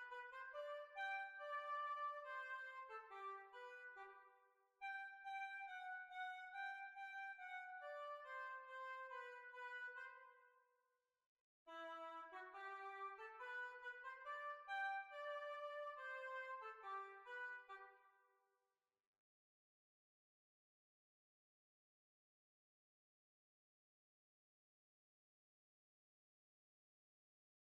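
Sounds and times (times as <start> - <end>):
hornpipe tune: 0.0 - 4.2, 4.8 - 10.2, 11.7 - 17.9.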